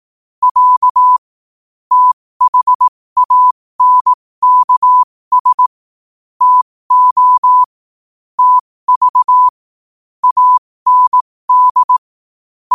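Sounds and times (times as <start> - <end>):
morse code at 5 wpm: 0.4 - 1.2, 1.9 - 5.7, 6.4 - 7.7, 8.4 - 9.5, 10.2 - 12.0.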